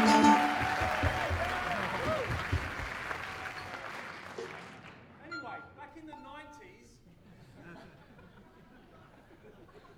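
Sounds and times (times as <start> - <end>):
audience clapping: 0.0 - 5.1.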